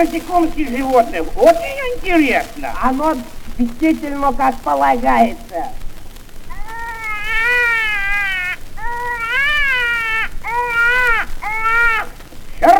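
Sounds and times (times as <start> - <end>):
speech: 0.0 - 5.8
baby crying loudly: 6.5 - 12.7.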